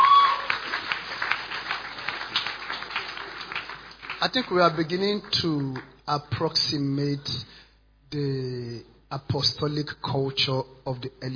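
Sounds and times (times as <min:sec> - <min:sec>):
audience clapping hands: 0:00.0 - 0:06.0
speech: 0:04.2 - 0:11.3.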